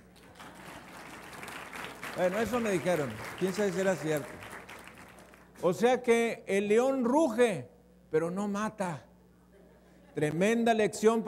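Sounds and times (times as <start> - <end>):
audience applauding: 0.0 - 5.6
speech: 2.2 - 4.4, 5.6 - 9.1, 10.2 - 11.2.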